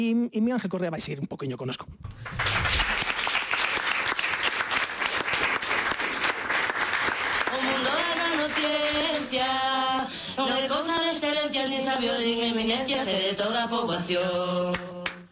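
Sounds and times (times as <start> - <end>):
speech: 0.0 - 2.6, 8.6 - 15.0
loud audience applause: 2.1 - 9.3.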